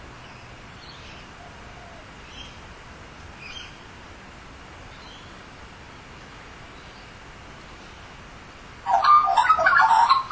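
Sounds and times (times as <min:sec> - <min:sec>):
Australian magpie giving mellow gurgling warbles: 0:08.9 - 0:10.2.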